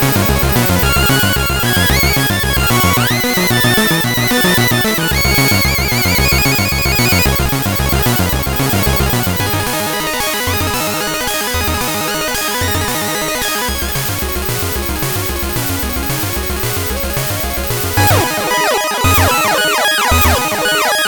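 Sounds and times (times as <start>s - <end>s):
chiptune sound from a real Game Boy revision A CPU: 0.0s - 21.0s.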